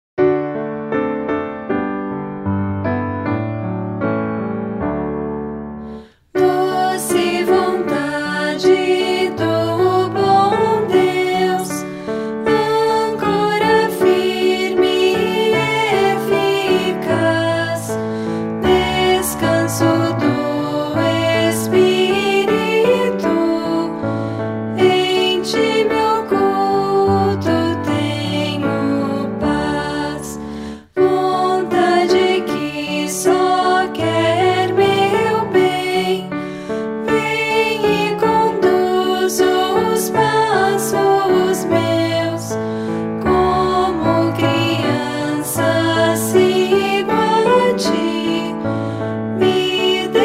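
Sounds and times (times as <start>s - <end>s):
piano: 0.2s - 50.2s
person singing: 6.0s - 24.1s, 24.7s - 36.4s, 37.0s - 42.6s, 43.2s - 48.7s, 49.4s - 50.2s.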